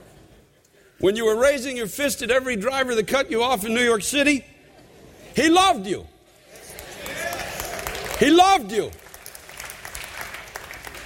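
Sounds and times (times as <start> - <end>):
speech: 1.0 - 4.5, 5.4 - 6.1, 8.2 - 9.0
audience clapping: 6.6 - 11.0.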